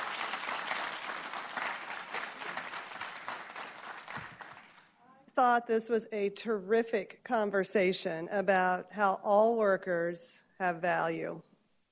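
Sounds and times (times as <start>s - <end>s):
audience applause: 0.0s - 5.0s
speech: 5.4s - 11.5s.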